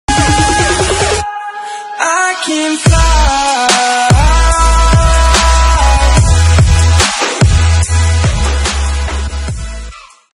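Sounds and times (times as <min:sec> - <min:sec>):
bass music intro: 0:00.1 - 0:01.2, 0:02.9 - 0:10.0.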